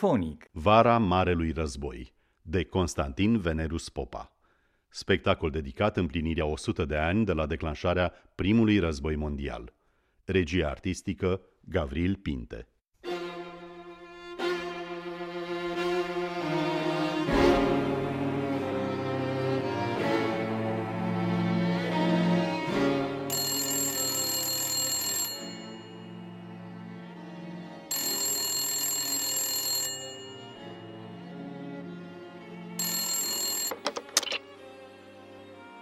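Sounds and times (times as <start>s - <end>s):
speech: 0.0s - 4.3s, 4.9s - 12.7s
orchestral music: 13.1s - 23.3s, 30.6s - 32.8s
telephone ringing: 23.3s - 26.4s, 27.9s - 31.2s, 32.8s - 34.5s.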